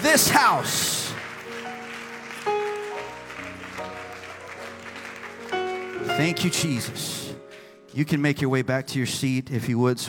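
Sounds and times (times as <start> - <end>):
audience clapping: 0.0 - 8.3
sustained keyboard chords: 0.0 - 8.9
speech: 0.2 - 1.0, 6.1 - 7.2, 7.9 - 10.0.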